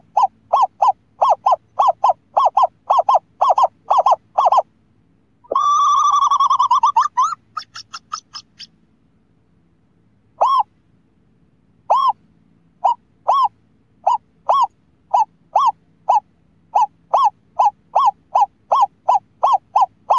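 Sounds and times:
scops owl hooting: 0.0 - 4.7, 5.4 - 8.7, 10.4 - 10.7, 11.9 - 12.2, 12.8 - 20.1.

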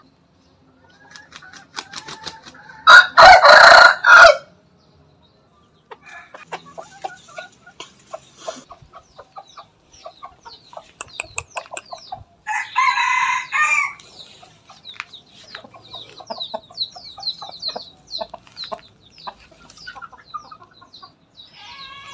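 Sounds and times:
chicken clucking: 0.0 - 3.8, 5.4 - 22.1
rooster crowing: 2.2 - 4.5, 12.5 - 14.0
bird chirping: 4.6 - 22.1.

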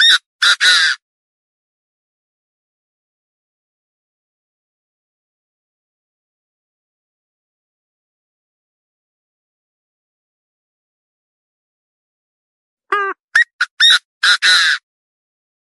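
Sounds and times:
partridge calling: 12.9 - 14.8.

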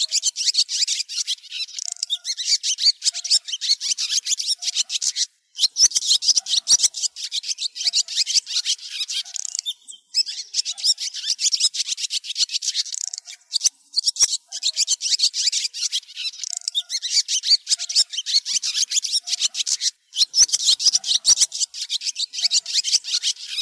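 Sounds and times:
swallows twittering: 0.0 - 23.6.

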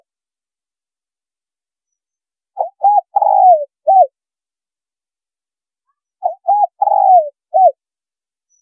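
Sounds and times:
spotted dove cooing: 2.6 - 4.1, 6.2 - 7.8.

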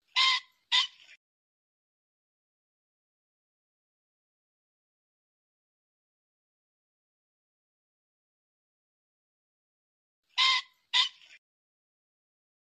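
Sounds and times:
pheasant squawking: 0.1 - 1.2, 10.4 - 11.4.

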